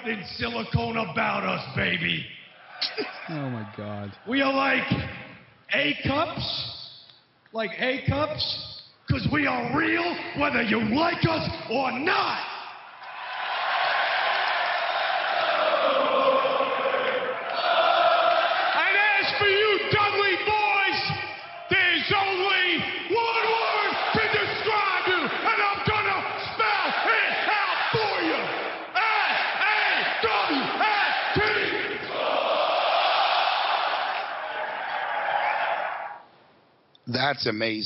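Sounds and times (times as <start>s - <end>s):
speech: 0.0s - 6.8s, 7.5s - 12.5s, 37.3s - 37.8s
crowd cheering and yelling: 13.0s - 36.3s.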